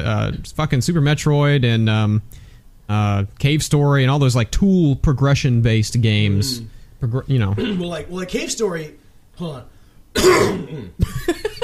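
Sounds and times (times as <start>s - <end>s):
speech: 0.1s - 11.6s
man coughing to clear mucus from his throat: 7.6s - 8.0s, 10.2s - 11.6s.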